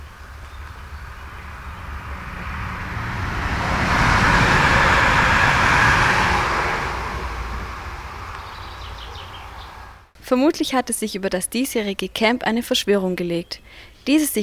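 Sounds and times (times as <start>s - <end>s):
train passing: 0.0s - 10.1s
speech: 10.3s - 14.4s.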